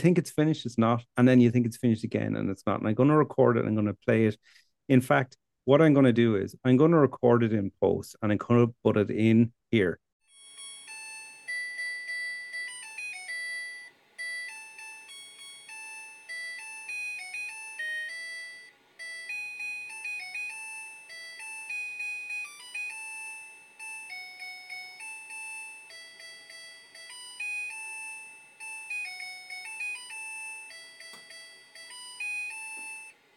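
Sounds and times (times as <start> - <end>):
speech: 0.0 - 10.0
washing machine end-of-cycle melody: 10.3 - 33.3.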